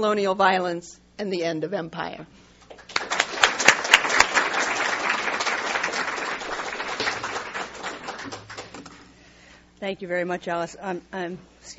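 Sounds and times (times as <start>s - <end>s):
speech: 0.0s - 2.4s, 9.8s - 11.7s
audience applause welcoming a professor to the lectern: 2.8s - 9.0s.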